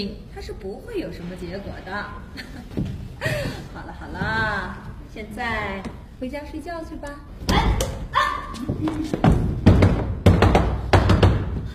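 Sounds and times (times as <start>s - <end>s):
speech: 0.0s - 7.9s, 8.5s - 9.6s
laughter: 2.3s - 4.7s, 8.6s - 9.2s
heavy knocking on a door: 9.2s - 11.7s.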